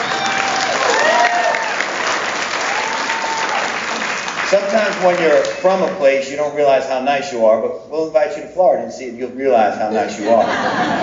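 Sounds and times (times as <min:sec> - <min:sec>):
audience applause: 0:00.0 - 0:06.1
speech: 0:04.8 - 0:11.0
laughter: 0:09.9 - 0:11.0.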